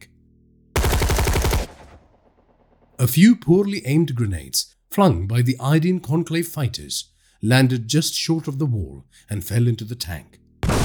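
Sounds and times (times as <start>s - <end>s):
automatic gunfire from a barricade: 0.8s - 2.1s, 10.6s - 10.8s
speech: 3.0s - 10.4s.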